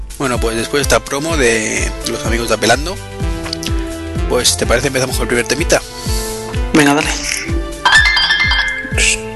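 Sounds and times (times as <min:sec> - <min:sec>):
speech: 0:00.2 - 0:03.2, 0:04.3 - 0:06.0, 0:06.8 - 0:07.3
recording reminder alarm ringing: 0:07.9 - 0:09.0.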